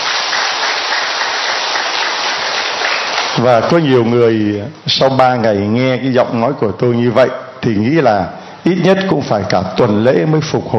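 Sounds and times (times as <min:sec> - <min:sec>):
large crowd applause: 0:00.0 - 0:03.6
speech: 0:03.4 - 0:10.7.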